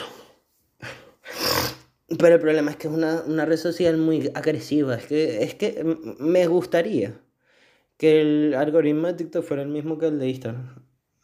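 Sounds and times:
sneeze: 1.2s - 1.9s
speech: 2.1s - 7.2s, 8.0s - 10.8s.

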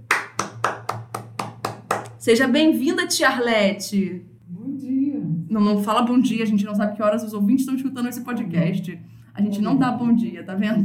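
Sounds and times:
hands clapping: 0.0s - 2.2s
speech: 2.2s - 4.3s, 5.5s - 10.8s.

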